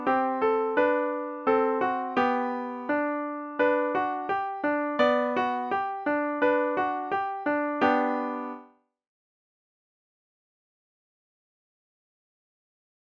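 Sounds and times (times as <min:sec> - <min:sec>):
musette: 0:00.0 - 0:08.7.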